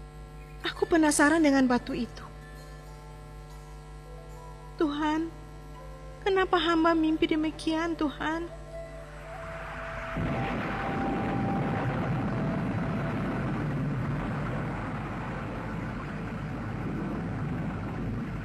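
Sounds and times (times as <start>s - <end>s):
speech: 0.7s - 2.2s, 6.5s - 8.6s
heavy rain: 9.5s - 18.4s
thunder: 10.0s - 18.4s.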